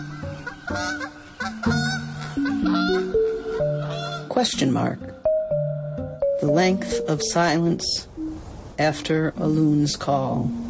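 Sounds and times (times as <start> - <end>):
wild goose honking at dusk: 0.0 - 4.8
speech: 0.7 - 1.8, 4.4 - 5.2, 6.4 - 8.1, 8.8 - 10.6.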